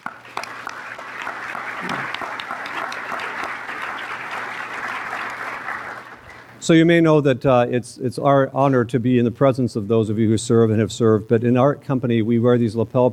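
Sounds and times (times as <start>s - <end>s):
audience applause: 0.0s - 6.6s
speech: 6.7s - 13.1s.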